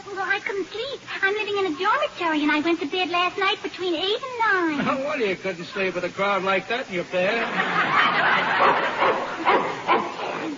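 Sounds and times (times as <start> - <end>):
speech: 0.4 - 9.2
laughter: 4.8 - 6.2, 7.2 - 10.5
dog barking: 8.5 - 10.5.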